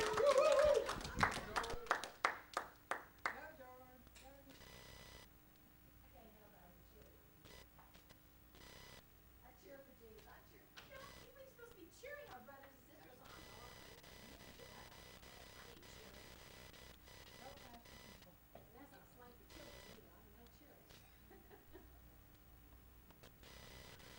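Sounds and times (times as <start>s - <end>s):
audience applause: 0.0s - 3.0s
laughter: 21.0s - 22.1s.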